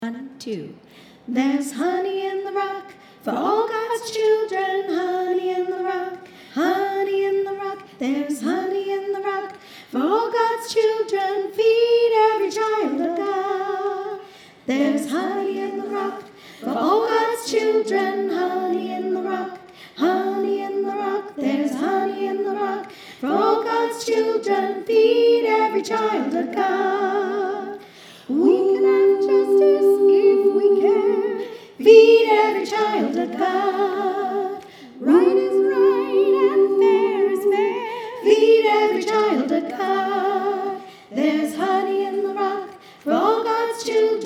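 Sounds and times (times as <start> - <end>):
soprano singing: 1.3 - 44.2.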